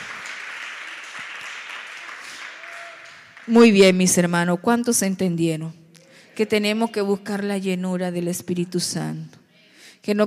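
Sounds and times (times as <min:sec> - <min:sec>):
audience applause: 0:00.0 - 0:03.8
speech: 0:03.4 - 0:05.8, 0:06.4 - 0:09.4, 0:10.0 - 0:10.2.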